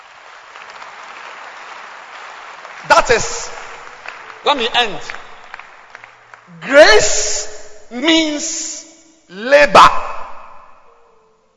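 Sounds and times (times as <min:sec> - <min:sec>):
audience clapping: 0:00.0 - 0:07.9
speech: 0:02.8 - 0:03.6, 0:04.4 - 0:05.2, 0:06.5 - 0:10.0.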